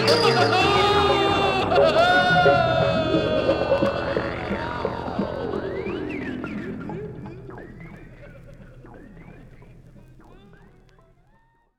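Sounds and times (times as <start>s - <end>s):
jack o' lantern laughing: 0.1s - 5.9s.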